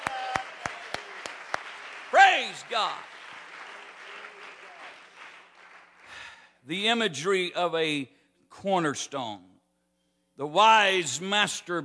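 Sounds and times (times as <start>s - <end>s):
audience clapping hands: 0.0s - 6.6s
speech: 2.4s - 3.1s, 6.6s - 9.5s, 10.4s - 11.8s.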